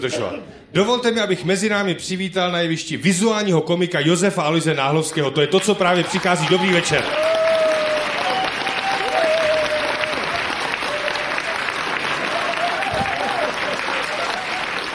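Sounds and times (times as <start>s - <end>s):
speech: 0.0s - 7.5s
audience applause: 5.8s - 14.9s.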